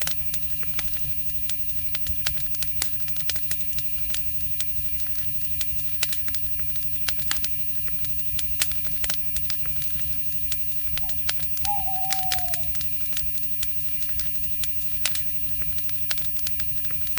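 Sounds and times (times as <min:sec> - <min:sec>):
forest night ambience: 0:00.0 - 0:17.1.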